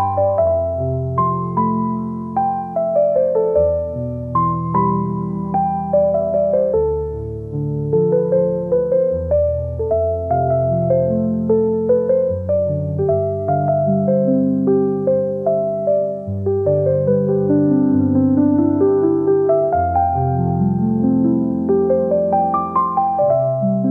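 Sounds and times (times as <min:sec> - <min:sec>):
gentle piano: 0:00.0 - 0:23.8.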